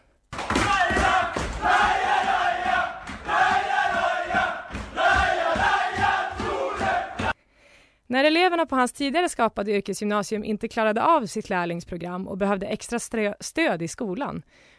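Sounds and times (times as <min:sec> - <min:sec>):
rhythmic thumps: 0:00.4 - 0:07.4
loud crowd cheering and shouting: 0:00.5 - 0:07.4
speech: 0:08.1 - 0:14.7.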